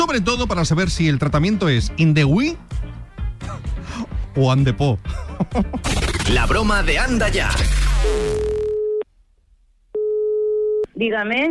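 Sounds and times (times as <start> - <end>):
speech: 0.1 - 2.8, 4.4 - 8.5, 11.0 - 11.4
noisy burst: 5.8 - 8.7
ringing tone of an outgoing telephone call: 8.4 - 9.0, 10.0 - 10.8.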